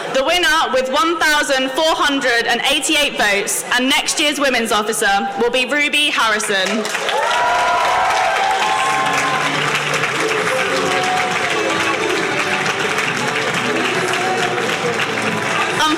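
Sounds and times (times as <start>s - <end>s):
speech: 0.2s - 7.9s
audience applause: 6.8s - 15.9s.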